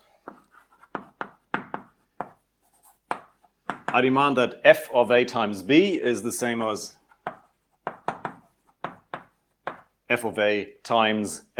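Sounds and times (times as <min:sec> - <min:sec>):
writing on a board during a lecture: 0:00.0 - 0:04.0, 0:07.0 - 0:10.0
speech: 0:03.9 - 0:07.0, 0:10.2 - 0:11.5.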